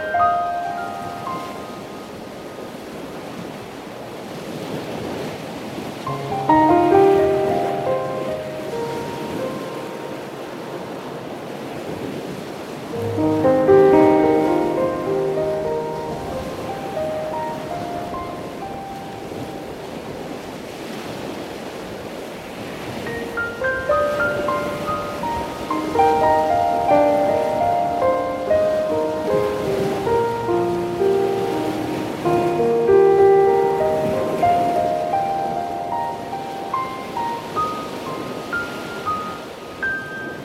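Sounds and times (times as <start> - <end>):
piano playing: 0.0 - 2.7, 6.0 - 12.0, 12.8 - 20.4, 22.9 - 40.4
ocean waves: 0.0 - 40.4.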